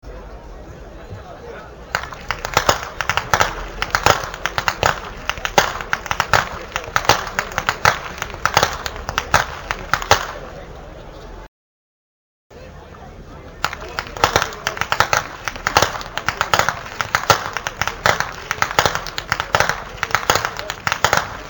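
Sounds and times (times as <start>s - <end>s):
youth whip cracking: 2.0s - 10.5s, 13.6s - 21.4s.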